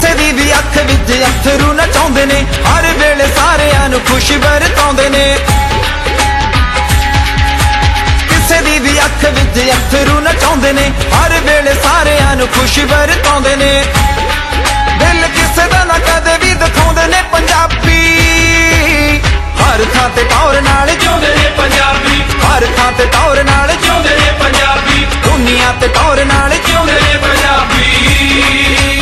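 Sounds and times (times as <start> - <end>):
Punjabi music: 0.0 - 29.0.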